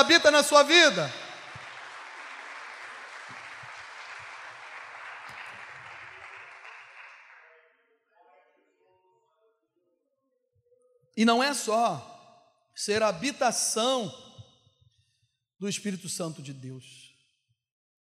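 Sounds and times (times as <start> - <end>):
speech: 0.0 - 1.2, 11.2 - 12.1, 12.8 - 14.2, 15.6 - 17.1
audience applause: 0.0 - 7.5.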